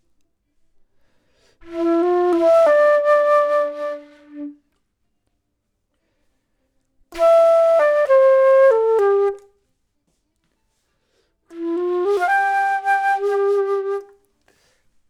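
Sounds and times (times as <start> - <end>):
flute: 1.6 - 4.8, 7.1 - 9.6, 11.5 - 14.3.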